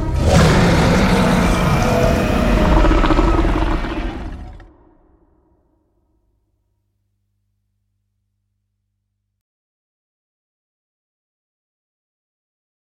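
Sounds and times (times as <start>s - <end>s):
roar: 0.1s - 5.2s.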